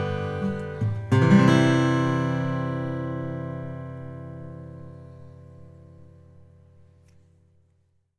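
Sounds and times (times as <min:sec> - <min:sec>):
twelve-fret Sitka acoustic guitar: 0:00.0 - 0:07.6.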